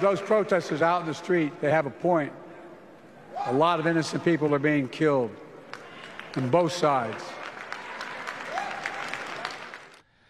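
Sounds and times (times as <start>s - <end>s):
speech: 0.0s - 2.4s, 3.4s - 5.4s, 6.3s - 7.4s
crowd cheering and applauding: 5.6s - 10.1s.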